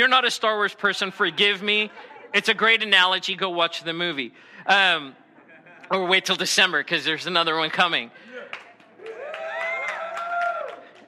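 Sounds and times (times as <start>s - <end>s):
speech: 0.0s - 5.2s, 5.9s - 8.3s
laughter: 1.0s - 3.0s, 5.1s - 6.3s
audience cheering: 9.0s - 11.0s.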